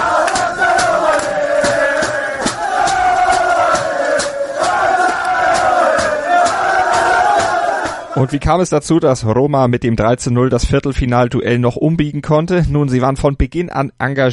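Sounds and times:
sharp claps or thumps: 0.0s - 8.1s
football players cheering and chanting in a dressing room: 0.0s - 8.6s
speech: 8.2s - 14.3s.

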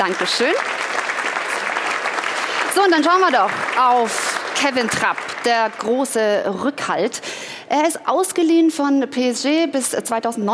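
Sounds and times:
speech: 0.0s - 0.9s, 2.8s - 10.5s
crowd applause: 0.0s - 6.1s.

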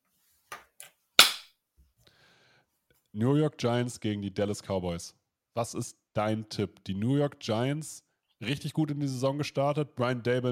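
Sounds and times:
single hand clap: 1.2s - 1.5s
speech: 3.1s - 10.5s.

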